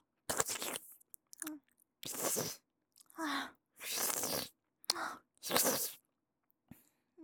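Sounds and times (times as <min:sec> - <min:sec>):
ear licking: 0:00.3 - 0:01.5, 0:02.0 - 0:03.1, 0:03.8 - 0:06.0.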